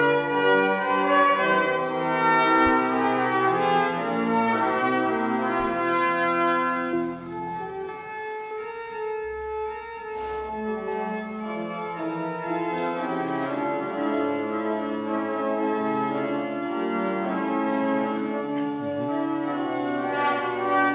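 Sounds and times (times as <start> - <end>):
pilgrimage church bells ringing in Biberbach near Augsburg in Bavarian Swabia: 0.0 - 7.3, 8.5 - 20.9.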